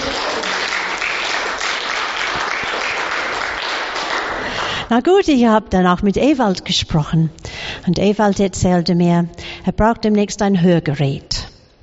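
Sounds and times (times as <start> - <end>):
crowd applause: 0.0 - 4.8
speech: 4.9 - 11.3.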